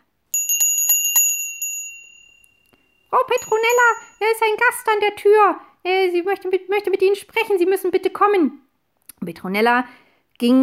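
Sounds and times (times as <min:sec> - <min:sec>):
small hand bell ringing: 0:00.0 - 0:04.6
speech: 0:03.1 - 0:08.6, 0:09.2 - 0:10.6.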